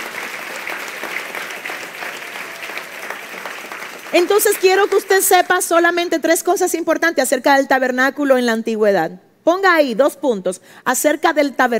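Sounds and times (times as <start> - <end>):
audience applause: 0.0 - 5.7
speech: 4.1 - 11.7.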